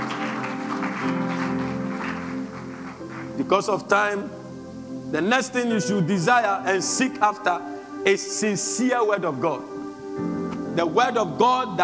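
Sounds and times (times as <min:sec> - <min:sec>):
audience clapping hands: 0:00.0 - 0:03.5
speech: 0:03.5 - 0:04.4, 0:05.1 - 0:11.8.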